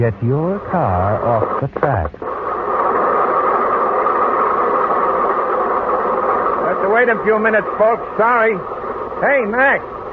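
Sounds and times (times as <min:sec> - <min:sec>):
speech: 0:00.0 - 0:02.4, 0:06.9 - 0:10.1
stopped train engine idling at a railroad crossing: 0:02.4 - 0:10.1.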